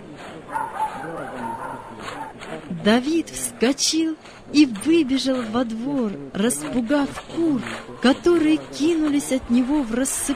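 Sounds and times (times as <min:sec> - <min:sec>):
indistinct voices in murmur: 0:00.0 - 0:10.3
dog barking and yipping: 0:00.5 - 0:02.4
speech: 0:02.8 - 0:10.3.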